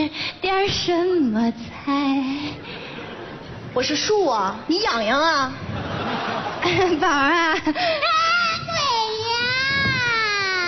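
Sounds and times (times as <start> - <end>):
speech: 0.1 - 2.6, 3.8 - 5.6, 6.6 - 8.2
laughter: 2.6 - 3.8, 5.5 - 8.0
frightened child crying: 8.0 - 10.6.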